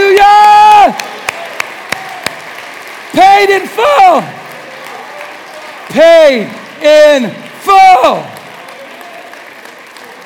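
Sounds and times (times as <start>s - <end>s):
audience clapping: 0.0s - 10.2s
speech: 3.2s - 4.4s, 6.0s - 8.3s.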